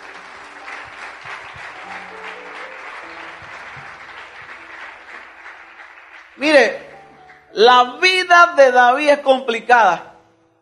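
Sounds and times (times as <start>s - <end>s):
audience applause: 0.0s - 7.5s
speech: 6.4s - 6.8s, 7.6s - 10.1s.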